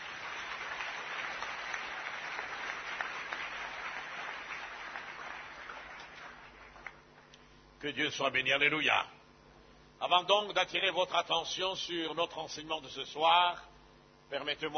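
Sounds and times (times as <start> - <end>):
church congregation applauding to acclaim God at an evening seminar service: 0.0 - 7.3
speech: 7.8 - 9.2, 10.0 - 13.7, 14.3 - 14.7.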